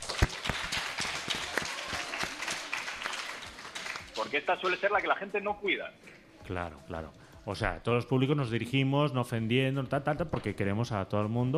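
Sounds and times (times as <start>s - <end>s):
small group applauding: 0.0s - 4.8s
speech: 4.2s - 11.5s.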